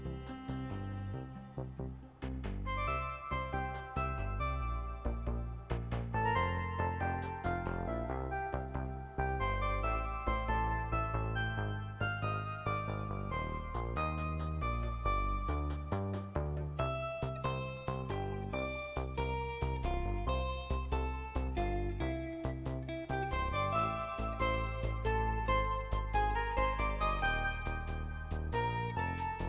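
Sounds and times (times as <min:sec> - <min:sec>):
chill upbeat music: 0:00.0 - 0:29.4.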